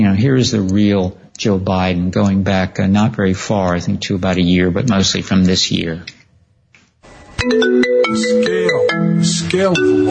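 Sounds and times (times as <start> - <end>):
speech: 0.0 - 6.2, 7.4 - 10.1
mobile phone ringtone: 7.4 - 10.1.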